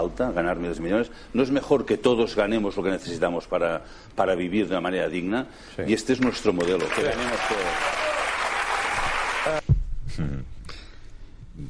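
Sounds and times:
speech: 0.2 - 8.1, 9.4 - 10.6
audience applause: 6.2 - 9.6.

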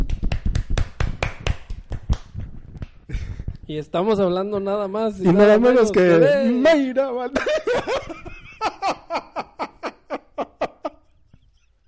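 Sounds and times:
applause of sharp hand claps: 0.0 - 3.0
speech: 3.7 - 8.2
laughter: 7.3 - 11.7.

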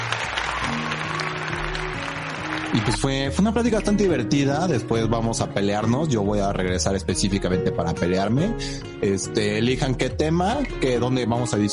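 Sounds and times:
applause: 0.0 - 4.1
speech: 2.7 - 11.7.

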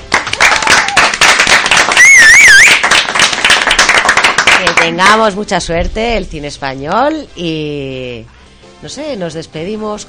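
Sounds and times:
applause: 0.0 - 5.0
speech: 4.8 - 10.0.

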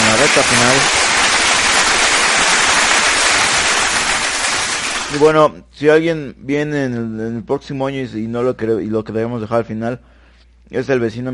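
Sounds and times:
applause: 0.0 - 5.3
speech: 0.3 - 1.0, 5.1 - 10.1, 10.7 - 11.3.

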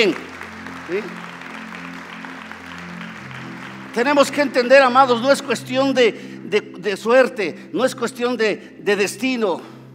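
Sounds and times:
speech: 0.0 - 0.3, 0.9 - 1.2, 4.0 - 9.7
audience applause: 0.0 - 5.2.

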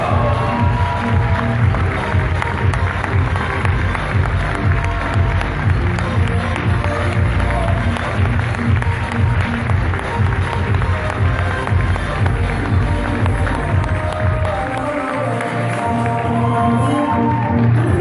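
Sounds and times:
audience cheering: 0.0 - 5.9, 13.2 - 17.9
loud audience applause: 0.0 - 17.9.

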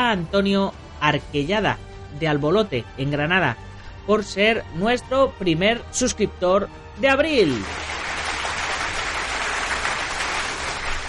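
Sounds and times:
speech: 0.1 - 7.9
crowd applauding: 7.4 - 11.0.

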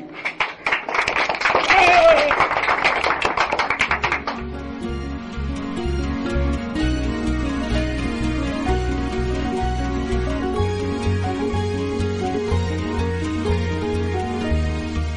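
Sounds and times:
audience clapping for children: 0.0 - 4.9
brief shout: 1.6 - 2.4
soft steady music: 3.8 - 15.1.

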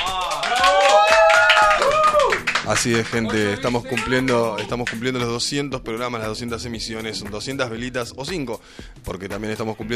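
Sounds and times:
people clapping: 0.0 - 5.3
speech: 2.7 - 9.9.

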